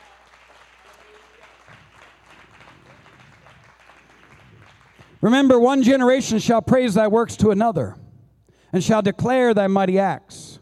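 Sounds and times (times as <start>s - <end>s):
audience clapping: 0.0s - 5.8s
speech: 5.2s - 8.0s, 8.7s - 10.3s.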